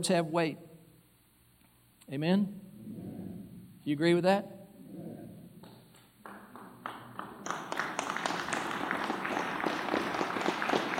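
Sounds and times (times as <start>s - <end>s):
speech: 0.0s - 0.7s, 2.1s - 2.7s, 3.9s - 4.6s
audience slow clap: 5.6s - 10.9s.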